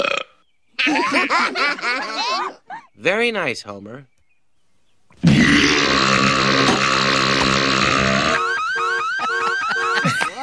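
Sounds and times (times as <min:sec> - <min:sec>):
long loud throaty belch: 0:00.0 - 0:00.4, 0:05.2 - 0:08.4
laughter: 0:00.8 - 0:02.9, 0:09.1 - 0:10.4
speech: 0:01.0 - 0:04.1.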